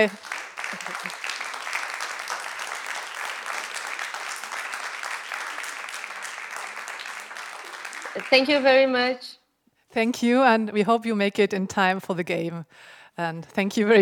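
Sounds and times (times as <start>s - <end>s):
speech: 0.0s - 0.3s, 8.2s - 9.4s, 10.0s - 14.0s
big audience clapping: 0.0s - 9.0s.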